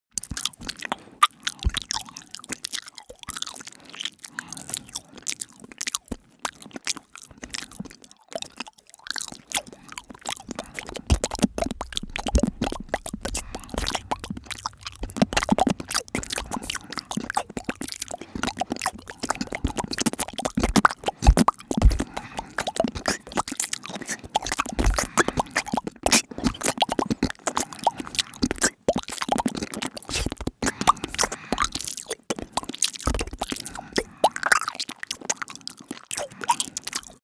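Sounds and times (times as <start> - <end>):
lip smacking: 8.5 - 37.2.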